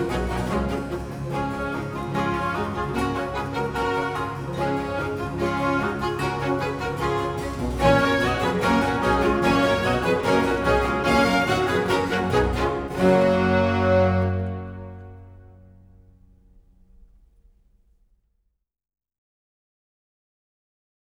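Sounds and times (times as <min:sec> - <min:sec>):
baroque concerto allegro in G major: 0:00.0 - 0:15.6.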